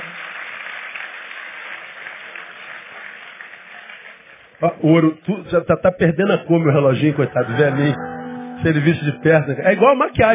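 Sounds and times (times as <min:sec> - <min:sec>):
audience applauding: 0:00.0 - 0:04.6
speech: 0:04.6 - 0:10.3.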